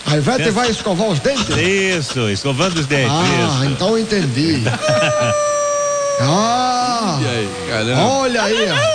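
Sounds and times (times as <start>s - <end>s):
speech: 0.1s - 5.6s, 6.2s - 8.9s
laughter: 2.7s - 8.9s
dog howling: 4.8s - 8.9s.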